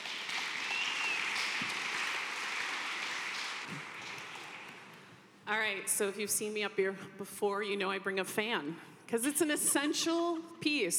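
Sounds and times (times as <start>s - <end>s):
audience applause welcoming a speaker: 0.0s - 5.0s
speech: 5.5s - 10.9s.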